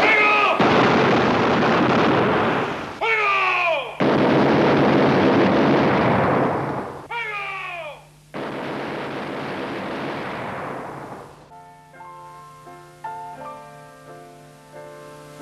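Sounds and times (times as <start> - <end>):
dense roaring volleys of gunfire: 0.0 - 3.0, 4.0 - 7.1, 8.3 - 11.4.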